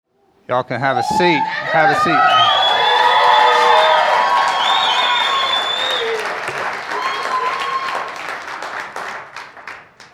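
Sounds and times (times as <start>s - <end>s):
speech: 0.5s - 2.4s
cheers and whoops: 1.0s - 8.3s
crowd applauding: 1.6s - 10.1s.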